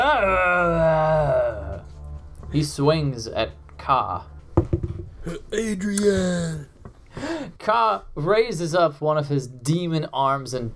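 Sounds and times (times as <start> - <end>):
person voicing a zombie battle roar: 0.0 - 1.8, 5.3 - 6.7
speech: 0.1 - 0.4, 2.5 - 10.7.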